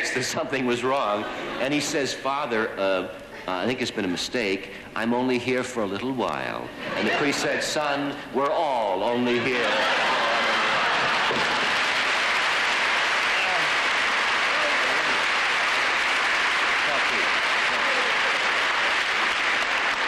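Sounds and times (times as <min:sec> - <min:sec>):
speech: 0:00.2 - 0:10.1
laughter: 0:06.7 - 0:07.8, 0:09.3 - 0:11.8
audience applause: 0:09.3 - 0:20.0.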